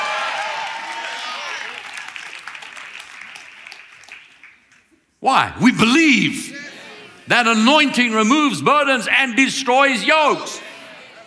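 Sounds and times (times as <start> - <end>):
audience applauding and cheering: 0.0 - 4.9
speech: 5.2 - 6.6, 7.3 - 10.7.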